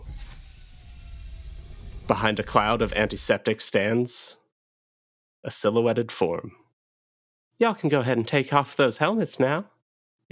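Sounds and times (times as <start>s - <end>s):
airlock doors hissing open: 0.0s - 3.3s
speech: 2.1s - 4.4s, 5.4s - 6.6s, 7.6s - 9.7s.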